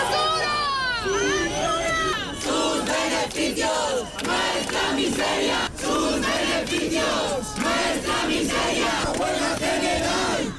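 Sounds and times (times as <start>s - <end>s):
large protest crowd chanting in unison: 0.0s - 10.5s.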